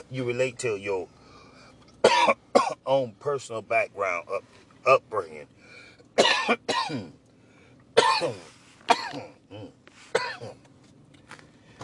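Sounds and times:
speech: 0:00.1 - 0:01.2, 0:02.3 - 0:07.2, 0:08.2 - 0:09.8
person coughing from choking on pork skins: 0:02.0 - 0:02.8, 0:06.2 - 0:07.2, 0:08.0 - 0:10.6.

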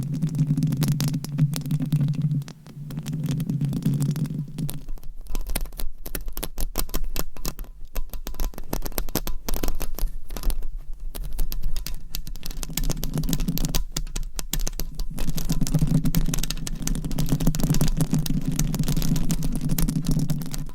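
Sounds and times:
low buzzing hum: 0:00.0 - 0:05.6
microphone scratching: 0:00.0 - 0:20.7.

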